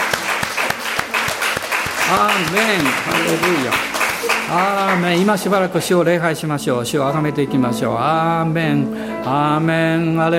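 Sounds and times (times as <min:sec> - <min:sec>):
audience applause: 0:00.0 - 0:05.6
speech: 0:02.1 - 0:03.9, 0:04.5 - 0:10.3.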